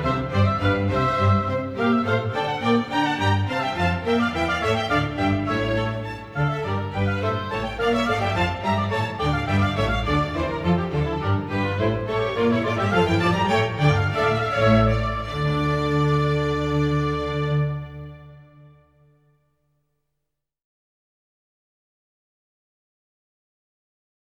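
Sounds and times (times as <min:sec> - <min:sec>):
baroque dance piece: 0:00.0 - 0:19.1.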